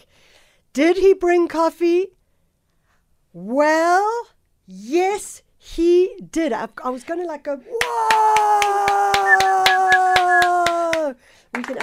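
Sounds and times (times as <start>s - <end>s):
speech: 0.8s - 2.2s, 3.4s - 9.4s, 11.1s - 11.8s
person clapping in rhythm: 7.8s - 11.8s.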